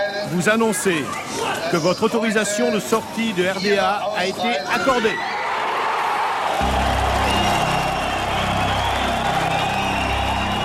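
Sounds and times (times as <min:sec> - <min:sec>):
speech: 0:00.3 - 0:05.3
crowd of refugees cheering with joy: 0:04.7 - 0:10.6
whoops: 0:05.2 - 0:10.6.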